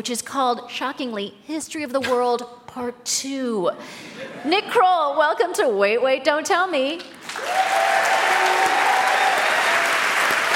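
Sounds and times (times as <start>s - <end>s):
speech: 0.0s - 7.9s
audience applause: 7.2s - 10.5s.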